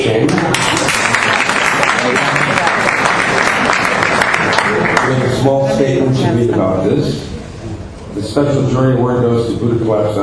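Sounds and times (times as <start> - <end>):
faint murmur of voices: 0.0 - 10.2
audience applause at award ceremony: 0.1 - 5.5
speech: 8.2 - 10.2.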